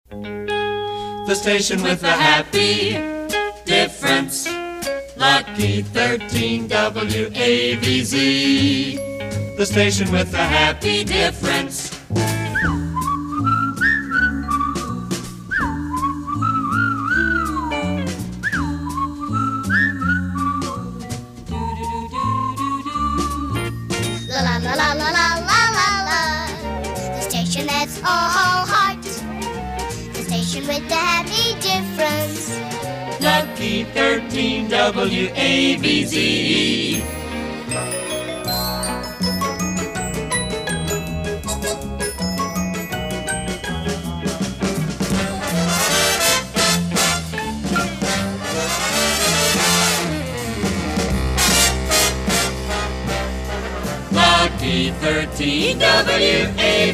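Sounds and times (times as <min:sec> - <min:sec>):
happy promo music: 0:00.1 - 0:56.9.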